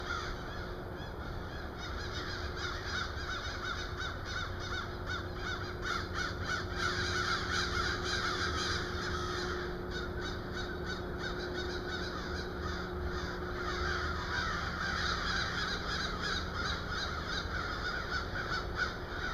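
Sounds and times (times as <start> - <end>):
crows giving scattered rough caws: 0.0 - 19.3.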